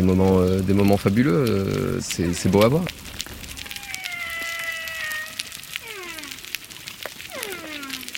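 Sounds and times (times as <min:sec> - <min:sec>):
speech: 0:00.0 - 0:03.1
crackling coral reef background: 0:00.0 - 0:08.1
humpback whale song: 0:03.6 - 0:06.5, 0:07.3 - 0:08.1.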